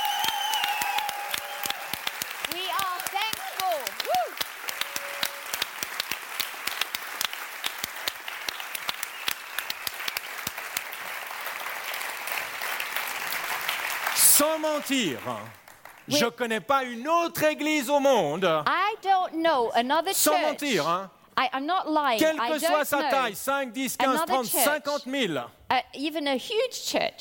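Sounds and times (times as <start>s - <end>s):
large audience applauding: 0.0s - 16.5s
rising whoop of a cheer: 3.8s - 5.5s
speech: 14.4s - 27.1s.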